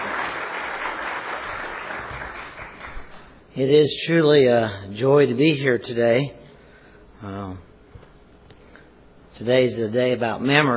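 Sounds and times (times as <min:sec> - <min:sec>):
audience applause: 0:00.0 - 0:03.3
speech: 0:03.6 - 0:06.4, 0:07.2 - 0:07.7, 0:09.4 - 0:10.7.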